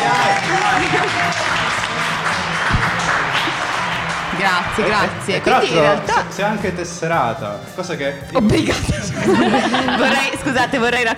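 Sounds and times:
audience applause: 0:00.0 - 0:06.1
laughter: 0:00.0 - 0:06.1, 0:08.5 - 0:11.0
speech: 0:04.5 - 0:11.1.

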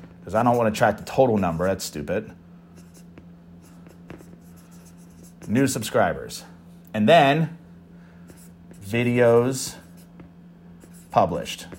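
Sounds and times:
handwriting scratching: 0:00.0 - 0:02.0, 0:02.8 - 0:05.8, 0:08.3 - 0:11.7
speech: 0:00.2 - 0:02.4, 0:05.5 - 0:07.6, 0:08.9 - 0:09.8, 0:11.1 - 0:11.7.

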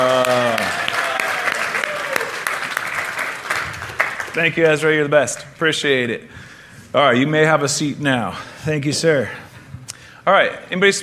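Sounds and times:
round of applause: 0:00.0 - 0:04.7
speech: 0:04.4 - 0:09.4, 0:10.3 - 0:11.0.

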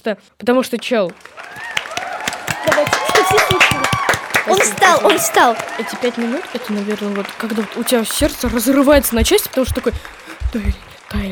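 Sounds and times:
speech: 0:00.0 - 0:01.7, 0:04.5 - 0:11.2
hand clapping: 0:01.1 - 0:11.2
excited voices whooping: 0:01.4 - 0:08.9.

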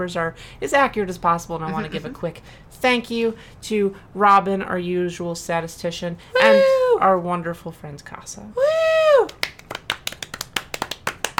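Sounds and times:
speech: 0:00.0 - 0:09.4
two people clapping: 0:09.1 - 0:11.3.

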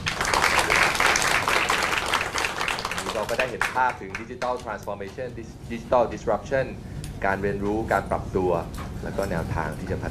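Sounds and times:
audience applause: 0:00.0 - 0:04.7
speech: 0:03.2 - 0:10.1.

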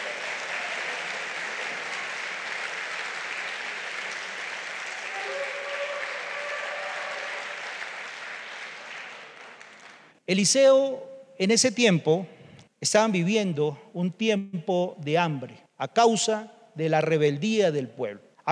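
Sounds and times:
applause: 0:00.0 - 0:10.2
speech: 0:10.3 - 0:18.5.

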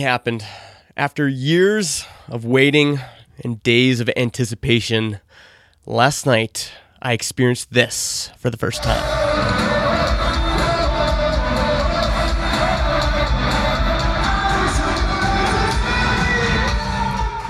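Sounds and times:
speech: 0:00.0 - 0:09.8
rock concert crowd cheering live: 0:08.8 - 0:17.4.

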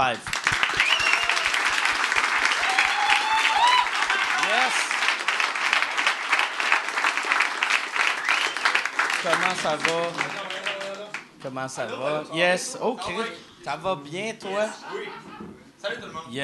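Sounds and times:
speech: 0:00.0 - 0:00.4, 0:09.2 - 0:10.4, 0:11.4 - 0:16.4
applause for arriving guests: 0:00.0 - 0:11.3
laughter: 0:14.5 - 0:15.7.

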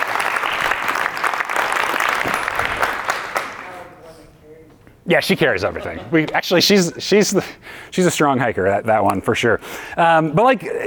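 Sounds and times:
audience applause: 0:00.0 - 0:03.7
speech: 0:05.1 - 0:10.8.

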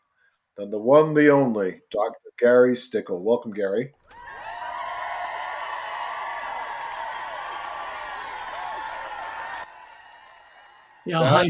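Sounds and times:
speech: 0:00.6 - 0:04.0, 0:11.1 - 0:11.4
crowd of Bacchic revelers cheering, a sound effect: 0:04.1 - 0:11.4.

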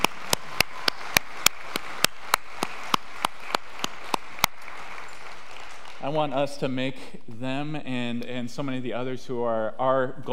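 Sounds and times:
audience applause: 0:00.0 - 0:06.5
speech: 0:06.0 - 0:10.3.

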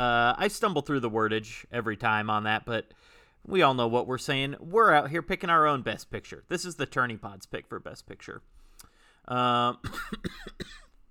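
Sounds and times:
speech: 0:00.0 - 0:08.6, 0:09.2 - 0:10.7
person coughing after choking on saliva: 0:09.8 - 0:11.0.

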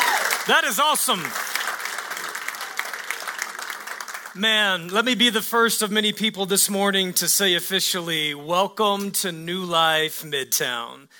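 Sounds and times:
audience clapping hands: 0:00.0 - 0:05.3
speech: 0:00.5 - 0:01.4, 0:04.4 - 0:11.1.

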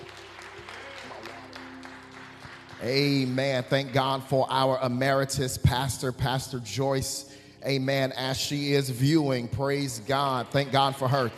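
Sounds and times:
audience clapping hands: 0:00.0 - 0:04.8, 0:10.0 - 0:11.3
speech: 0:02.8 - 0:11.3.

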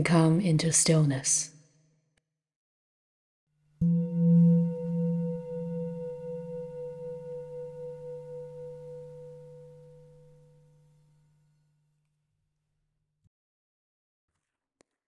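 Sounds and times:
speech: 0:00.0 - 0:01.5
meditation bell: 0:03.8 - 0:10.2.

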